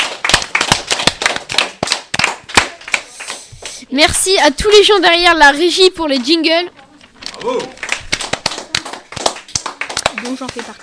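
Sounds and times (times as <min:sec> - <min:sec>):
audience clapping: 0:00.0 - 0:03.8, 0:07.3 - 0:10.8
speech: 0:03.9 - 0:06.8, 0:07.4 - 0:07.8, 0:10.4 - 0:10.8.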